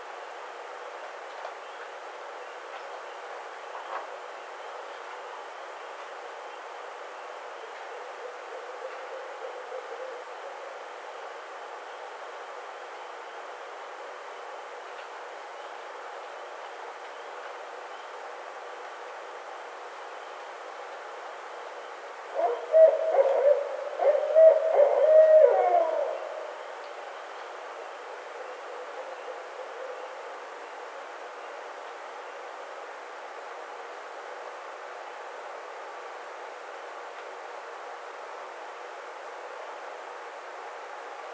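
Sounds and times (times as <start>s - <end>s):
Barred Owl calling: 22.3s - 26.8s.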